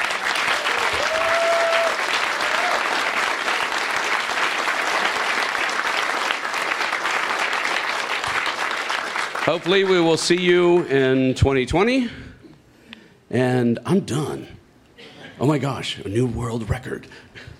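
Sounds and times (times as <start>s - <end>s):
loud applause from a large audience: 0.0s - 10.8s
speech: 9.5s - 12.2s, 13.3s - 14.6s, 15.4s - 17.5s.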